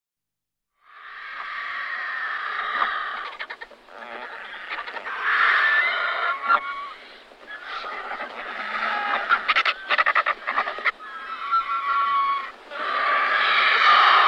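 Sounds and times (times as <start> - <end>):
griffon vulture hissing and cackling: 0.8 - 14.2.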